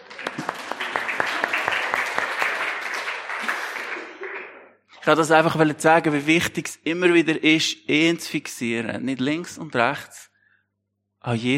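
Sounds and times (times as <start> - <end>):
audience applause: 0.0 - 4.7
speech: 5.0 - 10.3, 11.2 - 11.5.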